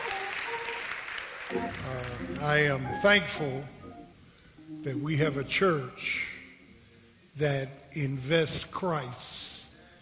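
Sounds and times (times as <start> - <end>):
audience applauding: 0.0 - 2.8
speech: 1.5 - 3.8, 4.8 - 6.3, 7.4 - 9.5.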